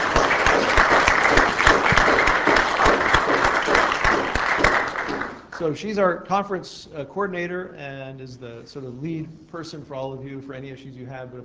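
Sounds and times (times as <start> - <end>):
audience round of applause: 0.0 - 5.5
speech: 5.6 - 11.4.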